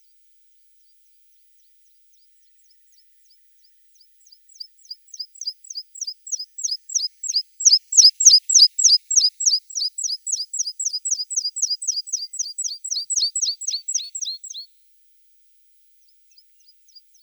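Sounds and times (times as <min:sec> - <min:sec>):
Meadow pipit calling: 0:05.1 - 0:14.6.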